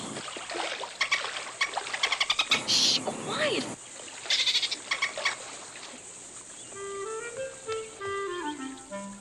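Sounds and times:
small water splashes: 0.0 - 6.8
water sloshing from an early morning swim: 0.0 - 9.0
speech: 2.7 - 3.8.

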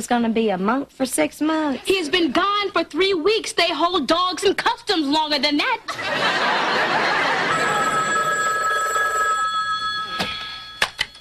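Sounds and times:
speech: 0.0 - 7.4
laughter: 5.9 - 8.4
telephone ringing: 7.0 - 11.1.

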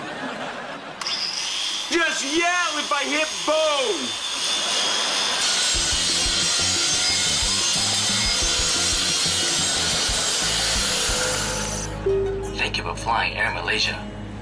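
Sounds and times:
laughter: 0.0 - 1.1, 4.4 - 5.4
power saw cutting wood: 1.0 - 12.0
speech: 1.9 - 4.6, 12.8 - 14.1.

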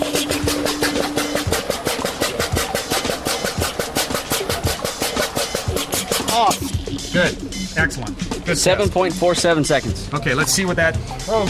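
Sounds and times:
water pump running: 0.0 - 7.5
speech: 7.2 - 11.4.

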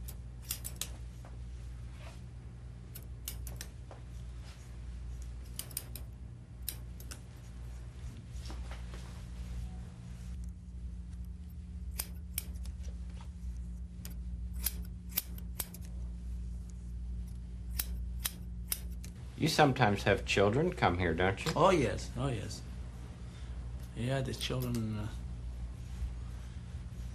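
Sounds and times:
scissors snipping hair: 0.0 - 1.3, 2.9 - 7.8, 10.4 - 13.0, 13.6 - 16.0, 16.6 - 19.2, 23.8 - 25.1
low hum: 0.0 - 27.1
speech: 19.4 - 22.7, 24.0 - 25.2.

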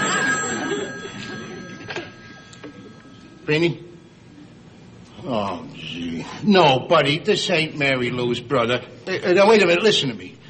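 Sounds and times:
telephone ringing with a bright metallic tone: 0.0 - 3.7
speech: 3.5 - 3.9, 5.2 - 10.4.

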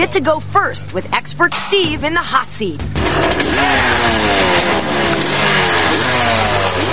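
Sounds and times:
speech: 0.0 - 5.4
three-wheeler engine starting and revving hard: 2.9 - 6.9.

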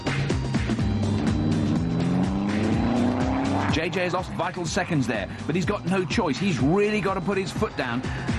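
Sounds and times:
race car engine revving while oversteering in a turn: 0.1 - 6.6
race car tires squealing: 1.0 - 8.3
speech: 3.8 - 8.3.

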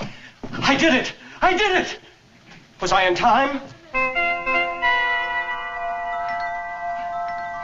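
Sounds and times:
speech: 0.7 - 2.0, 2.8 - 3.7
musical doorbell chime: 4.0 - 7.6.

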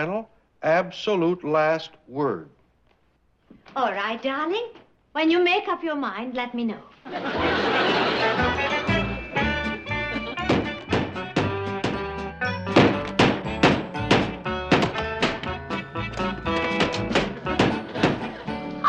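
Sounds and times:
speech: 0.0 - 2.6, 3.7 - 8.8
laughter: 7.0 - 10.4, 17.3 - 18.8
hammering new shingles on a roof: 10.4 - 12.1, 12.7 - 15.6, 16.7 - 18.3.

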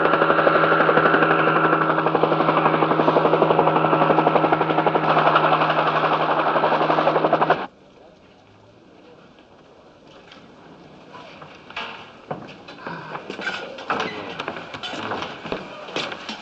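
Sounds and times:
helicopter flying: 0.0 - 7.7.

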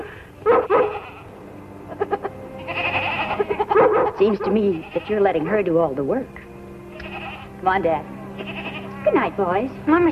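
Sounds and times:
Lassie the dog barking: 0.4 - 1.2, 3.7 - 4.5
Lassie the dog yipping: 0.5 - 1.2, 3.3 - 4.5
speech: 4.2 - 6.4, 7.6 - 10.1.

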